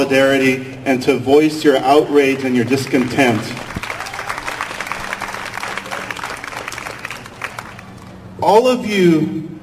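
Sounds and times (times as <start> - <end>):
speech: 0.0 - 3.7, 8.4 - 9.5
rally crowd clapping and cheering: 2.4 - 8.3.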